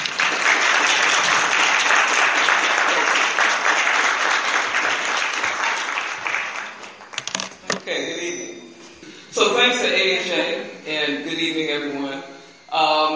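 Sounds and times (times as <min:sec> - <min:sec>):
audience applause welcoming a speaker at a 2016 award talk event: 0:00.0 - 0:07.2
speech: 0:09.8 - 0:13.1.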